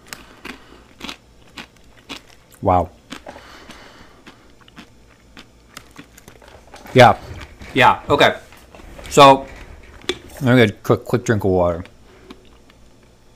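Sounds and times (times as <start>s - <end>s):
crunching and chewing corn pops cereal: 0.0s - 8.7s, 11.3s - 13.3s
speech: 2.6s - 3.0s, 6.9s - 8.4s, 9.1s - 9.5s, 10.4s - 11.9s.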